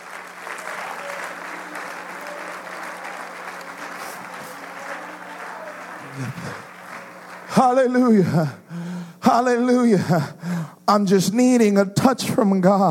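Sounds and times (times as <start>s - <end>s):
church congregation clapping their hands to the Lord: 0.0s - 10.0s
speech: 6.2s - 6.7s, 7.5s - 8.6s, 9.3s - 12.8s.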